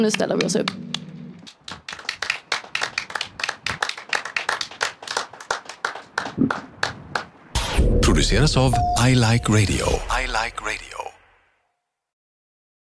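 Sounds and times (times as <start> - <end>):
speech: 0.0 - 0.9, 8.2 - 10.8
small group applauding with hand claps: 0.0 - 7.3.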